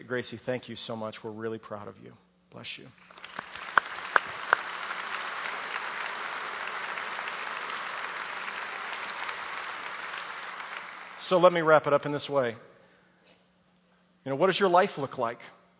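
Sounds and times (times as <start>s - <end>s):
speech: 0.1s - 3.2s, 11.3s - 12.7s, 14.2s - 15.6s
audience applauding: 3.0s - 11.8s.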